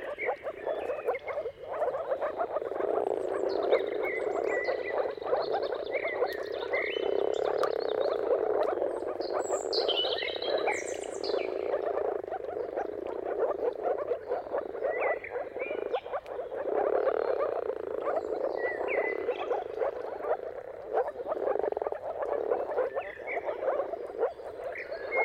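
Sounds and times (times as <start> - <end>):
moor frog chorus bubbling: 0.0 - 25.2.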